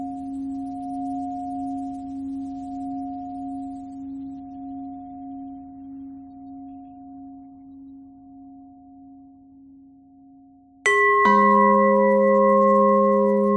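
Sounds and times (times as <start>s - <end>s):
pentatonic bell melody: 10.9s - 13.5s.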